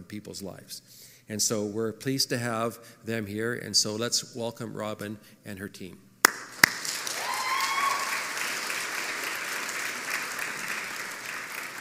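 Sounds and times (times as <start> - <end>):
speech: 0.1 - 6.1
audience cheering: 6.7 - 11.7.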